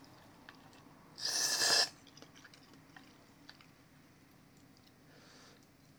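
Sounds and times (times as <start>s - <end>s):
person just eating ramen: 1.2s - 2.5s.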